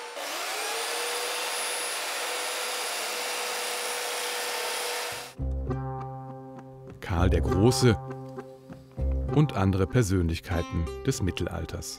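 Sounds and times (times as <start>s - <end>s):
chainsaw carving wood sculpture: 0.0s - 5.4s
speech: 7.1s - 8.1s, 9.3s - 11.9s.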